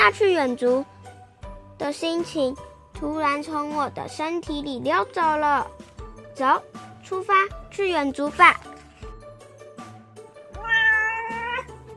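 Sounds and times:
speech: 0.0 - 0.9, 1.8 - 5.8, 6.4 - 8.7
cat meowing: 10.6 - 11.8.

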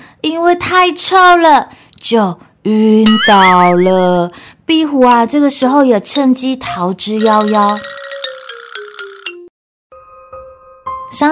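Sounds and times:
speech: 0.2 - 8.0
electronic doorbell chime: 7.2 - 9.5.

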